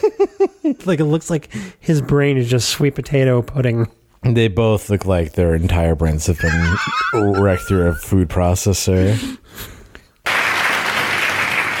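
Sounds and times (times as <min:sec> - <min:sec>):
speech: 0:00.2 - 0:09.8
laughter: 0:06.4 - 0:08.2
crowd applauding: 0:10.2 - 0:11.7.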